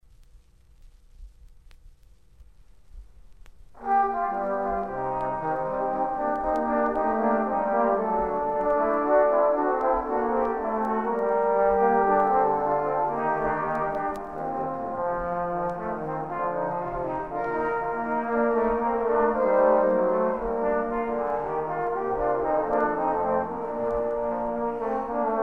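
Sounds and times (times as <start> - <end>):
baroque music: 3.8 - 25.4.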